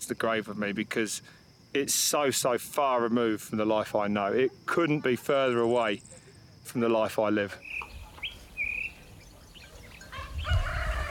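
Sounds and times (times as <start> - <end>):
speech: 0.0 - 7.9
rooster crowing: 10.0 - 11.0.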